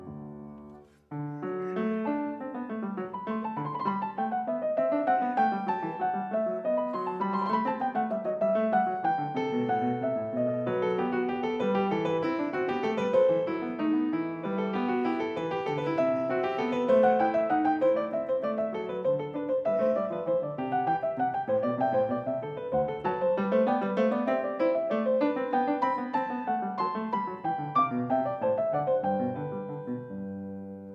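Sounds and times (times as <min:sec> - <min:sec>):
baroque canon played on piano: 0:00.0 - 0:30.9.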